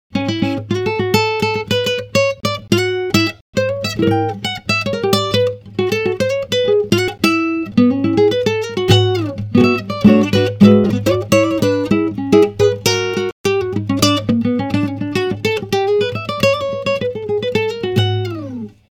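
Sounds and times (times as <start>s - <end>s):
raw instrumental solo: 0.9s - 18.7s.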